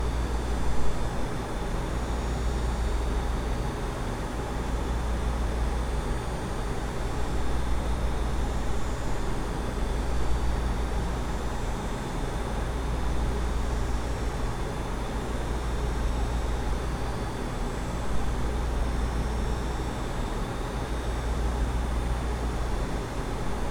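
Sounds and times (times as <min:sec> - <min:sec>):
industrial building server room ambience: 0:00.0 - 0:23.6.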